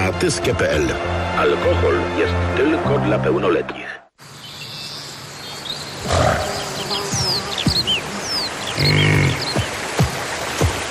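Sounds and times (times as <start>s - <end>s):
speech: 0.2s - 3.9s
birds chirping: 3.8s - 10.8s
European bison grunting while cooling itself: 6.0s - 6.7s.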